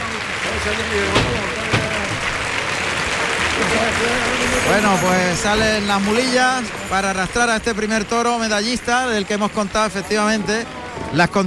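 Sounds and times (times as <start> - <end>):
commentator talking over bullring applause: 0.0 - 2.6, 3.4 - 11.4
bullring crowd giving an ovation to bullfighter Urdiales: 0.0 - 11.4
speech: 0.6 - 1.7, 3.6 - 11.4.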